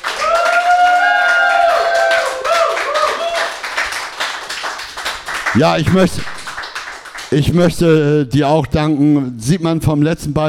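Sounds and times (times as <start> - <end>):
applause: 0.0 - 8.1
speech: 5.6 - 6.4, 7.3 - 10.4.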